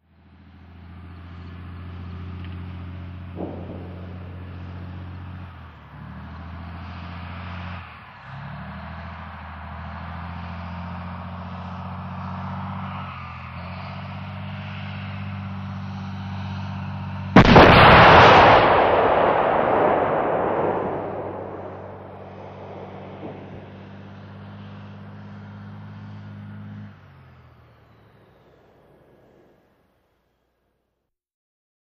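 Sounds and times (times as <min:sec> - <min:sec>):
M-60 tank driving, exterior: 0:00.0 - 0:30.2
M-60 tank main weapon firing close-up: 0:02.4 - 0:07.8, 0:17.4 - 0:26.5, 0:27.9 - 0:29.7.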